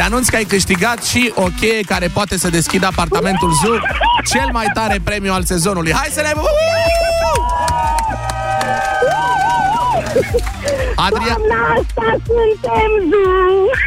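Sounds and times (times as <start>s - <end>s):
fans cheering and applauding: 0.0s - 4.7s, 6.4s - 13.0s
speech: 0.0s - 9.2s, 10.1s - 13.8s
laughter: 2.6s - 5.2s, 8.6s - 13.8s
high sustained whoops and shouts: 6.4s - 10.3s.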